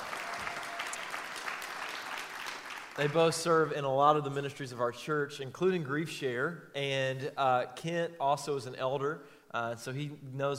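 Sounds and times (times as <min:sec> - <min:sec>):
church congregation applause welcoming guests: 0:00.0 - 0:03.7
speech: 0:03.0 - 0:10.5.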